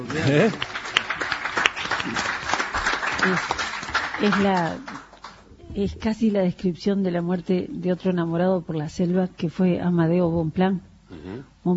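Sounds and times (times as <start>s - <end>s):
speech: 0.0s - 0.8s, 2.0s - 2.3s, 3.2s - 3.6s, 4.2s - 4.9s, 5.8s - 11.7s
applause: 0.0s - 5.5s.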